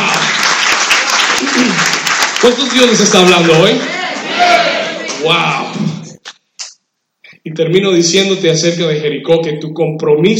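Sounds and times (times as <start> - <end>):
audience applause: 0.0 - 5.8
speech: 1.6 - 4.5, 5.2 - 5.8, 7.4 - 10.3.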